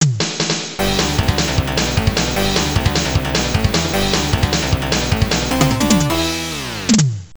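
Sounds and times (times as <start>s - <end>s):
game over jingle: 0.8s - 7.0s.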